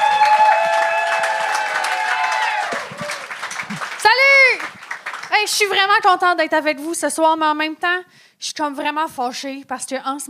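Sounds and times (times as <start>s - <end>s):
audience applause welcoming a comedian: 0.0s - 5.8s
speech: 5.6s - 10.2s.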